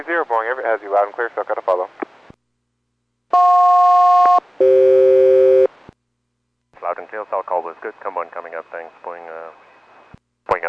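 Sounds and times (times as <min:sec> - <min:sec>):
speech: 0:00.0 - 0:02.0, 0:07.1 - 0:09.6
aircraft SELCAL radio two-tone chime: 0:03.4 - 0:05.7.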